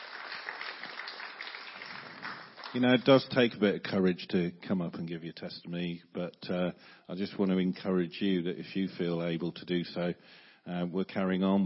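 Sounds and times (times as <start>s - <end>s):
audience applause: 0.0s - 3.2s
speech: 2.7s - 11.6s.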